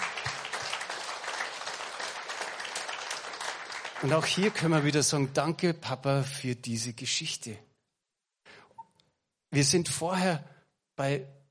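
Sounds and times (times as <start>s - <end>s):
applause: 0.0s - 5.4s
speech: 4.0s - 7.7s, 9.5s - 11.4s.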